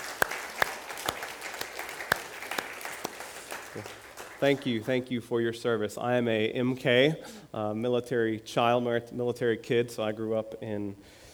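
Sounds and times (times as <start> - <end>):
audience clapping: 0.0 - 5.1
speech: 3.8 - 11.2.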